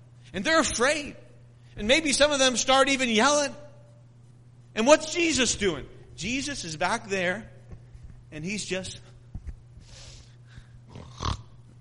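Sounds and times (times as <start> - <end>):
low steady hum: 0.0 - 11.7
speech: 0.3 - 1.2, 1.8 - 3.6, 4.8 - 7.5, 8.3 - 9.1
voice imitating snoring: 10.9 - 11.5.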